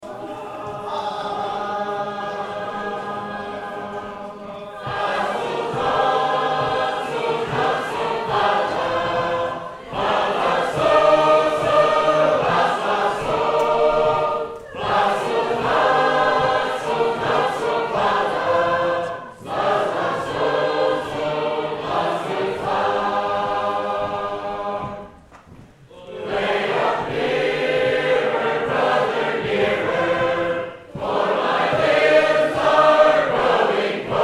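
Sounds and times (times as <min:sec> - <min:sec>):
sacred harp choir singing: 0:00.0 - 0:34.2.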